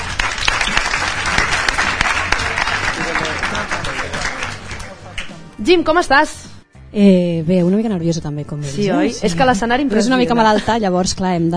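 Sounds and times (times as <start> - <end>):
audience applause: 0.0 - 5.4
speech: 5.6 - 11.5.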